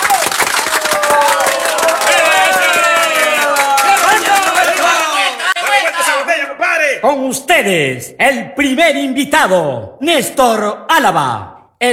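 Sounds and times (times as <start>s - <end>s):
crowd clapping: 0.0s - 6.4s
cheering voices: 0.0s - 7.0s
speech: 7.0s - 11.9s.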